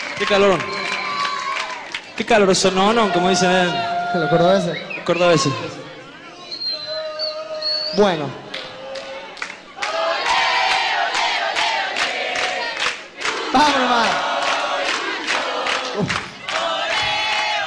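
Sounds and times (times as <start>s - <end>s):
speech: 0.2s - 0.7s, 2.2s - 5.9s, 7.9s - 8.5s, 13.6s - 14.3s, 16.0s - 16.2s
large crowd of football fans chanting: 9.8s - 17.6s.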